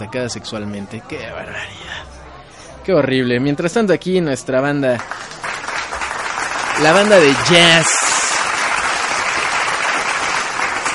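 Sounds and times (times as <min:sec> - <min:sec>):
speech: 0:00.0 - 0:02.2, 0:02.9 - 0:05.3, 0:06.8 - 0:08.0
loud applause: 0:05.0 - 0:10.9.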